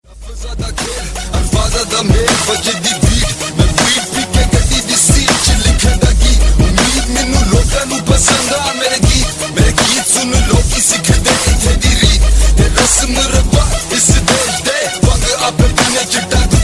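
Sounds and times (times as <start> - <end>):
shocking bass: 0.0 - 16.6.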